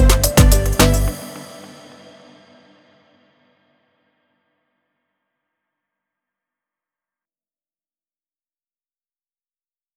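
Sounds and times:
reggaeton music: 0.0s - 2.7s.

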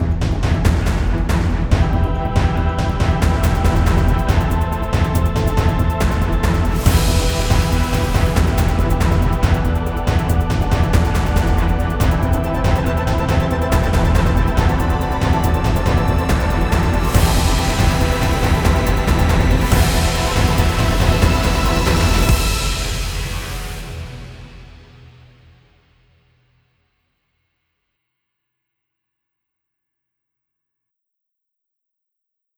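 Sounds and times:
tension music: 0.0s - 25.7s.

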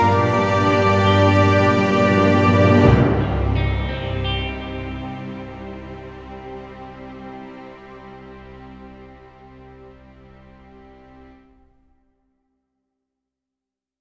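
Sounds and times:
dramatic guitar: 0.0s - 7.7s.

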